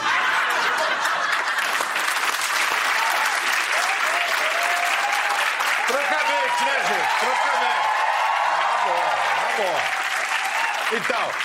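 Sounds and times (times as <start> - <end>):
laughter: 0.0 - 2.0
crowd applauding: 0.0 - 11.4
scattered cheers and whoops: 2.8 - 11.3
speech: 6.5 - 8.0, 8.9 - 10.0, 10.9 - 11.4.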